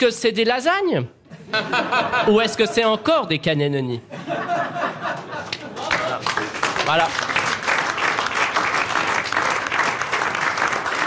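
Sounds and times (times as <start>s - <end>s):
speech: 0.0s - 5.1s, 6.9s - 7.4s
laughter: 1.3s - 3.0s, 4.1s - 6.4s
game show studio audience standing ovation applause: 5.7s - 11.0s.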